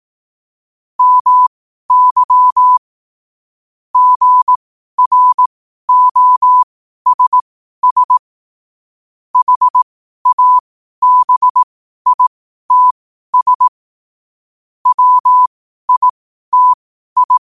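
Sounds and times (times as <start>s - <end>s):
morse code at 5 wpm: 1.0s - 2.8s, 4.0s - 8.2s, 9.4s - 13.7s, 14.8s - 17.4s.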